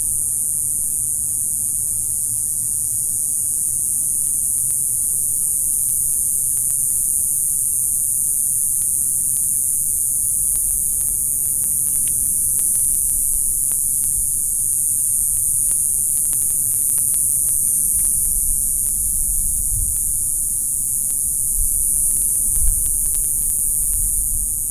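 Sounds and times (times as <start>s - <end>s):
insects in Palm Springs: 0.0s - 24.6s.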